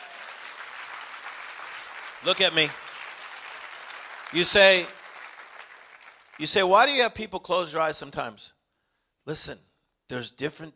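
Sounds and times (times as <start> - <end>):
crowd clapping hands: 0.0 - 6.9
speech: 2.2 - 2.8, 4.3 - 5.0, 6.4 - 8.6, 9.3 - 10.7.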